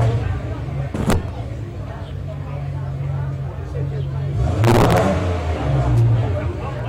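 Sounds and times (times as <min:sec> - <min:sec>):
Ferrari GTO engine revving: 0:00.0 - 0:01.6, 0:04.1 - 0:06.8
faint chatter: 0:00.0 - 0:06.8.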